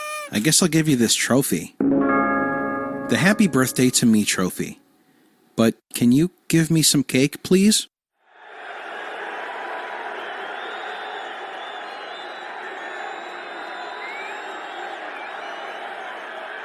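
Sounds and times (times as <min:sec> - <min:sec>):
speech: 0:00.3 - 0:01.9, 0:03.1 - 0:04.8, 0:05.6 - 0:07.9
crowd cheering: 0:08.3 - 0:16.6.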